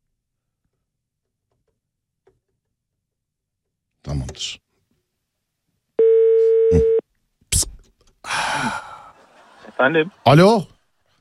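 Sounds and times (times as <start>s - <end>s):
speech: 4.1s - 4.6s, 9.8s - 10.7s
telephone tone while calling a number again: 6.0s - 7.0s
laughter: 8.7s - 11.1s.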